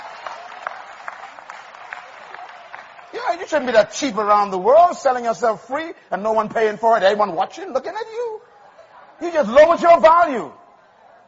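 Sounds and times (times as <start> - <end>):
audience clapping: 0.0 - 4.3
speech: 3.1 - 8.3, 9.2 - 10.6.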